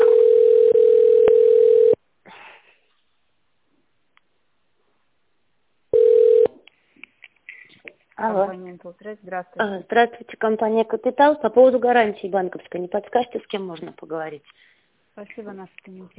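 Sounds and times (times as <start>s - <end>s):
telephone ringback tone: 0.0s - 2.0s, 6.0s - 6.5s
speech: 8.8s - 16.1s.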